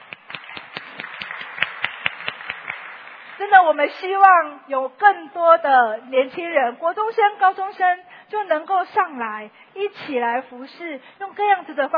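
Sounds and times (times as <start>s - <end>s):
audience applause: 0.0s - 3.4s
speech: 3.4s - 11.9s.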